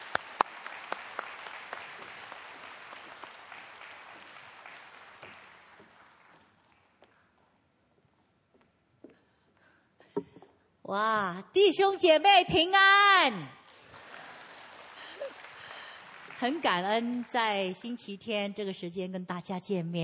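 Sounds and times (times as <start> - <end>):
warm audience applause: 0.0 - 7.0, 13.7 - 17.7
speech: 10.9 - 13.6, 16.4 - 20.0.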